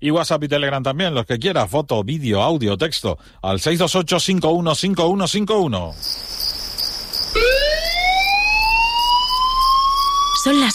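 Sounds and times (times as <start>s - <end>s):
speech: 0.0s - 6.6s, 10.4s - 10.7s
high insect-like chirring: 5.9s - 10.7s
fire engine emergency siren: 7.3s - 10.7s.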